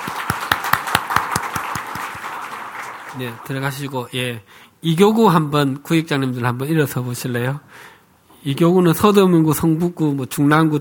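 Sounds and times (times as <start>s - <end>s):
audience applauding: 0.0s - 3.9s
speech: 3.2s - 10.7s.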